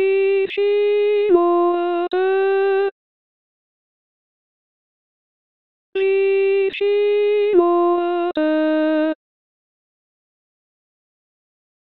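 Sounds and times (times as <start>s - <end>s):
soprano singing: 0.0s - 3.0s, 6.0s - 9.2s.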